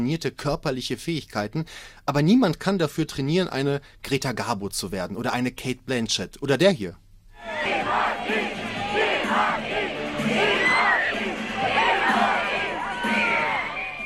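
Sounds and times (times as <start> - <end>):
speech: 0.0 - 7.0
fans screaming and shrieking in Venice: 7.4 - 14.0.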